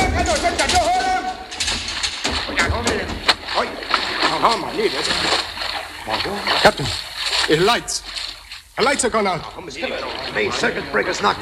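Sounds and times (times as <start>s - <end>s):
water gushing through a submarine conning tower hatch: 0.0s - 11.3s
speech: 4.5s - 5.4s, 6.6s - 8.2s, 8.8s - 11.3s.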